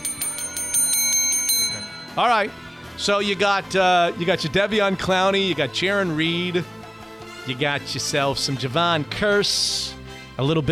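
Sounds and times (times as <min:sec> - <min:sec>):
bell ringing: 0:00.0 - 0:02.7
speech: 0:02.2 - 0:06.8, 0:07.4 - 0:10.6.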